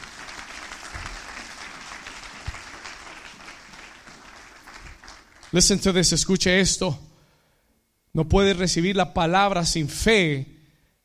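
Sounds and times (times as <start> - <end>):
audience applauding: 0.0 - 5.9
speech: 5.5 - 7.1, 8.2 - 10.5.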